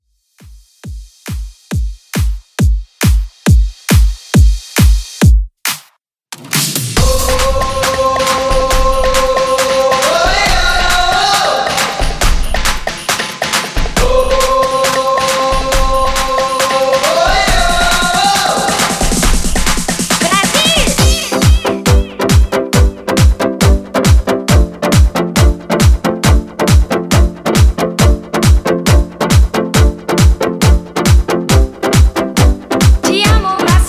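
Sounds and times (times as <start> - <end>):
club dance music at 137 BPM: 0.4 - 5.8, 6.5 - 33.8.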